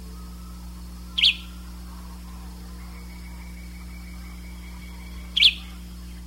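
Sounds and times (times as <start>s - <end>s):
bird chirps: 0.0s - 6.2s
faint background whine and hum: 0.0s - 6.2s.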